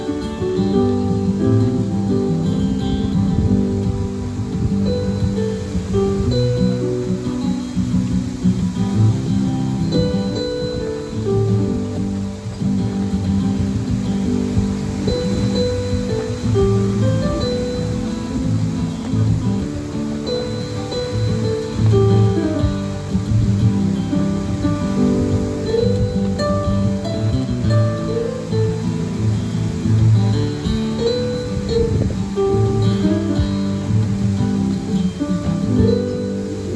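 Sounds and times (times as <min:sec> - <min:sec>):
guitar: 0:00.0 - 0:36.7
piano: 0:00.0 - 0:36.7.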